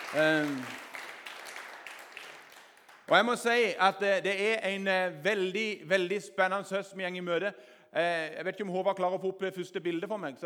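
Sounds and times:
crowd clapping: 0.0 - 4.0
speech: 0.1 - 0.8, 3.1 - 10.4.

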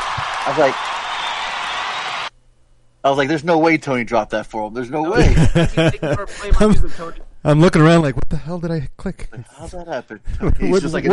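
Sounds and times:
cheering voice: 0.0 - 2.3
crowd applause effect: 0.0 - 2.3
speech: 0.4 - 1.0, 3.0 - 11.1
laughter: 5.1 - 7.0.

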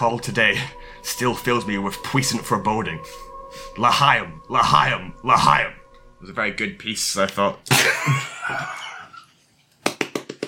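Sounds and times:
speech: 0.0 - 8.8
one person clapping hands: 9.8 - 10.4.

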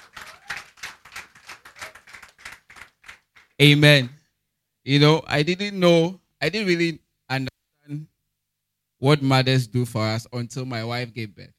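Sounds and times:
audience clapping for mothers: 0.0 - 3.6
speech: 3.6 - 4.2, 4.8 - 8.1, 9.0 - 11.5.

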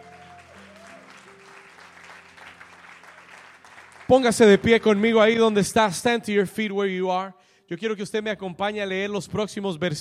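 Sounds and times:
audience applauding: 0.0 - 5.5
speech: 4.1 - 9.9.

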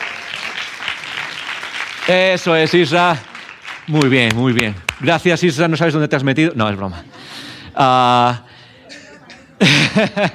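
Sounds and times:
audience applauding: 0.0 - 5.3
speech: 2.1 - 3.3, 3.9 - 8.5, 10.0 - 10.3
laughter: 8.8 - 10.3.

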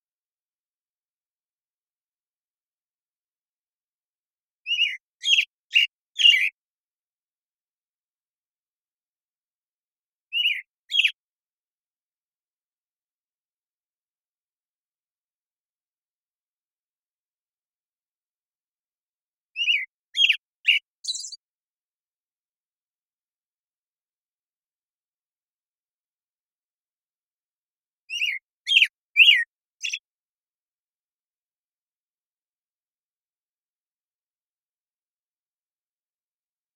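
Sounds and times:
American Robin singing: 4.6 - 6.6, 10.3 - 11.2, 19.5 - 21.4, 28.1 - 30.1.

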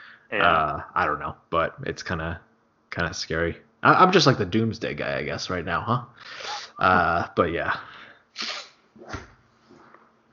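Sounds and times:
speech: 0.3 - 9.3
person sniffling: 6.2 - 6.8, 7.9 - 8.8.

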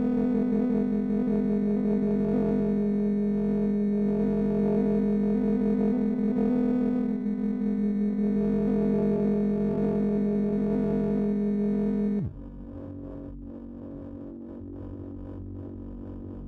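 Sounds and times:
FM tones from an oscillator bank: 0.1 - 12.4.

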